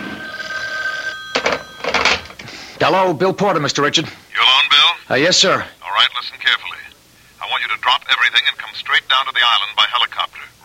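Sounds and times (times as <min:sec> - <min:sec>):
telephone ringing: 0:00.0 - 0:02.6
speech: 0:02.8 - 0:04.2, 0:05.1 - 0:06.7, 0:07.7 - 0:10.6.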